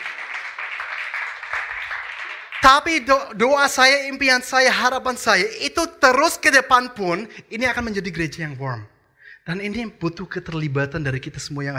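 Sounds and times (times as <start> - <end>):
audience applause: 0.0 - 3.1
speech: 2.6 - 11.7.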